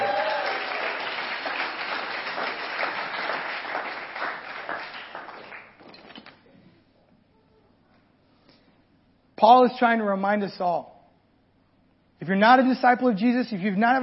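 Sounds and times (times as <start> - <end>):
crowd applause: 0.0 - 5.9
speech: 9.4 - 10.9, 12.2 - 14.0.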